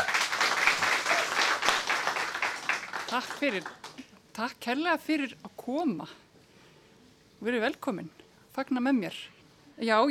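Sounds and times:
crowd applauding: 0.0s - 4.1s
speech: 3.1s - 3.8s, 4.4s - 6.2s, 7.4s - 10.0s.

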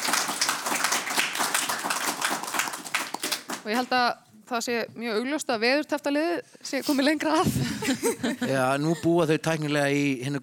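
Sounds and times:
studio audience applause on a team quiz show: 0.0s - 4.0s
speech: 3.6s - 10.4s
laughter: 7.4s - 9.3s.

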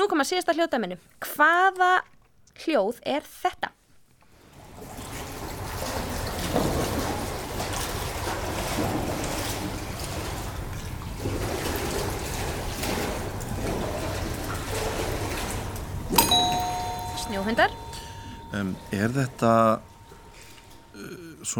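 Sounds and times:
speech: 0.0s - 3.8s, 17.3s - 17.8s, 18.5s - 19.9s, 21.0s - 21.5s
splashing in a wave pool: 4.4s - 20.6s.

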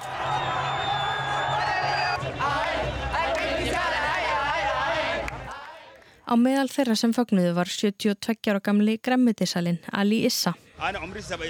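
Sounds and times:
crowd celebrating in the streets of Khartoum: 0.0s - 5.6s
speech: 6.3s - 11.4s.

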